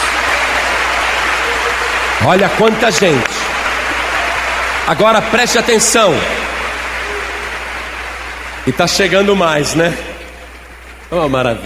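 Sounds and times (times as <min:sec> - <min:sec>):
church audience applauding: 0:00.0 - 0:11.6
speech: 0:02.2 - 0:03.4, 0:04.8 - 0:06.5, 0:08.7 - 0:10.1, 0:11.1 - 0:11.6.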